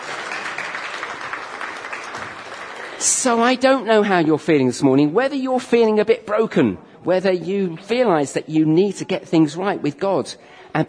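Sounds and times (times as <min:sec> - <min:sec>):
crowd applauding: 0:00.0 - 0:03.8
speech: 0:03.0 - 0:10.8.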